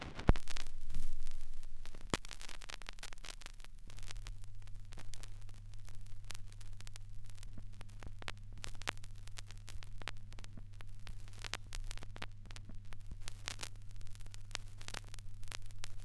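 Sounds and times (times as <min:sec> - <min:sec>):
vinyl crackles: 0:00.0 - 0:16.0.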